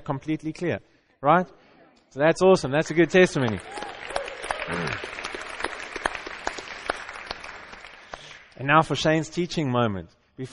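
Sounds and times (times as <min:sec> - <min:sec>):
speech: 0:00.0 - 0:03.9, 0:04.7 - 0:05.2, 0:08.6 - 0:10.5
audience clapping: 0:02.9 - 0:08.6.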